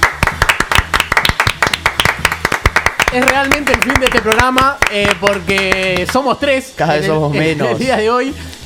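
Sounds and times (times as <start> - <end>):
small group applause: 0.0 - 6.3
speech: 3.1 - 8.5.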